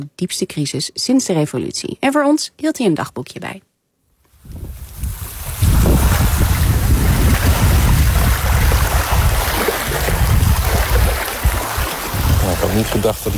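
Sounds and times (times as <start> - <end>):
speech: 0.0 - 3.7, 12.8 - 13.3
seawater waves at Guantanamo Bay: 5.2 - 13.3.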